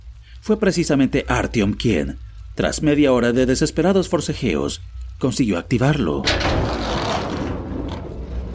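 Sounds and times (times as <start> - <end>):
speech: 0.4 - 6.8
heavy rusty iron door sliding open: 6.2 - 8.5.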